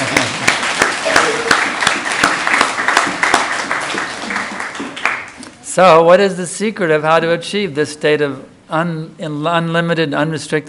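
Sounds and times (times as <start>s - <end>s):
audience applause: 0.0s - 5.4s
speech: 5.8s - 10.6s.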